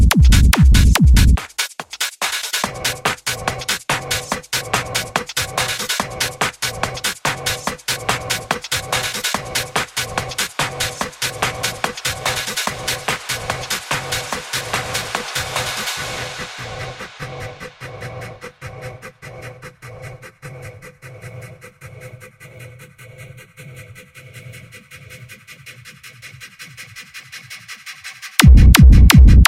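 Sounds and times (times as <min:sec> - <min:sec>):
90's hardstyle techno music: 0:00.0 - 0:19.8, 0:28.4 - 0:29.4.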